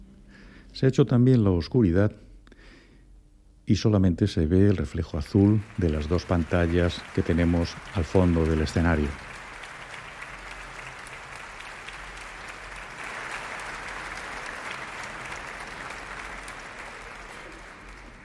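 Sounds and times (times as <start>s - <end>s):
speech: 0.8s - 2.2s, 3.7s - 9.3s
audience applause for concertmaster's entrance: 5.1s - 18.2s.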